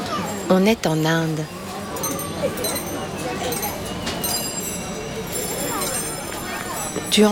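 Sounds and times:
bicycle bells ringing on a busy Indian street: 0:00.1 - 0:07.3
speech: 0:00.5 - 0:01.6, 0:02.4 - 0:03.6, 0:07.2 - 0:07.3.

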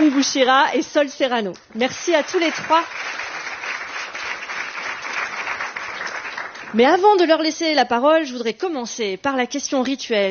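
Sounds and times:
audience applause: 0:00.0 - 0:00.5, 0:01.9 - 0:06.8
speech: 0:00.0 - 0:03.2, 0:06.7 - 0:10.2.

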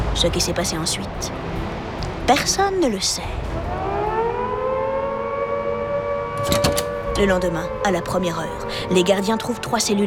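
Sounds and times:
speech: 0:00.1 - 0:01.6, 0:02.3 - 0:03.9, 0:06.4 - 0:10.0
prison alarm siren: 0:03.4 - 0:10.0.

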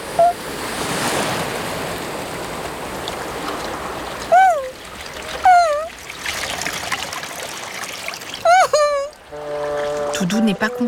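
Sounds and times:
big wave splashing around paws in the water: 0:00.0 - 0:10.8
person exclaiming: 0:04.3 - 0:04.7, 0:05.5 - 0:05.9, 0:08.5 - 0:09.1
speech: 0:10.3 - 0:10.8.

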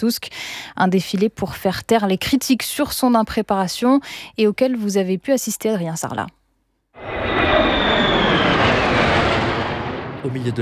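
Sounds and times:
speech: 0:00.0 - 0:06.4, 0:10.2 - 0:10.6
F-16 and F-35 fighter jets flying overhead: 0:07.0 - 0:10.6.

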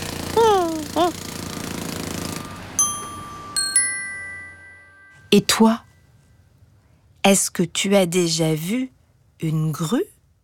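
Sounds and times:
jackhammer digging into the ground: 0:00.0 - 0:02.8
speech: 0:01.0 - 0:01.3, 0:05.3 - 0:05.8, 0:07.2 - 0:10.1
bright chime-like tones: 0:02.6 - 0:05.8.

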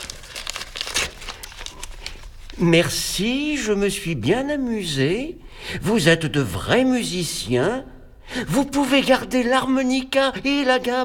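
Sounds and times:
paper envelope being torn open: 0:00.0 - 0:02.6
speech: 0:02.6 - 0:11.0.

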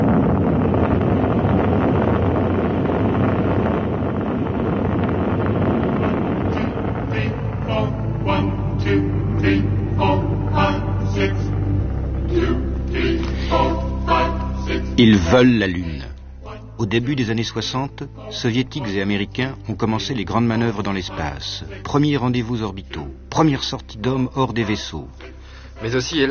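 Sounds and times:
rocket engines igniting at launch: 0:00.0 - 0:23.8
speech: 0:15.0 - 0:16.1, 0:16.8 - 0:26.2.

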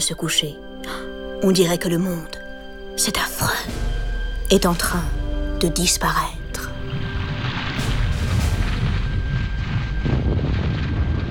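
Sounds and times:
speech: 0:00.0 - 0:02.4, 0:03.0 - 0:03.8, 0:04.5 - 0:06.4
volcanic eruption explosions: 0:06.8 - 0:11.2
violent volcanic eruption roar: 0:07.0 - 0:11.2.

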